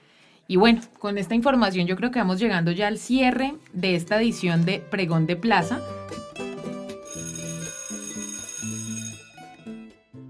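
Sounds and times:
speech: 0.5s - 6.3s
bell announcing start of the workday: 7.0s - 9.8s.

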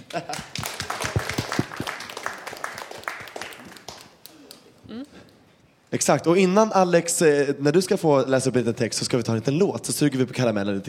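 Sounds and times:
applause: 0.0s - 4.6s
speech: 0.1s - 0.5s, 5.9s - 10.8s.

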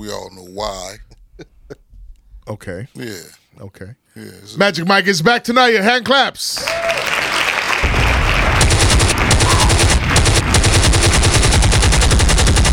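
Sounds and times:
speech: 0.0s - 1.8s, 2.5s - 7.1s
automatic gunfire sound effect: 7.8s - 12.7s.

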